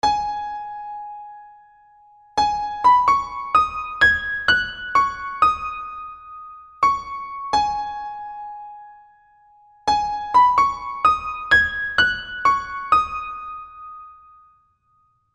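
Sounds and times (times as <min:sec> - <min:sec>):
piano: 0:00.0 - 0:15.3.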